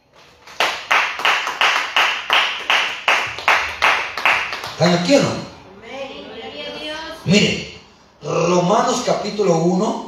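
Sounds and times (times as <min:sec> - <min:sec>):
audience clapping: 0:00.0 - 0:05.1
speech: 0:04.8 - 0:05.5, 0:07.2 - 0:10.0.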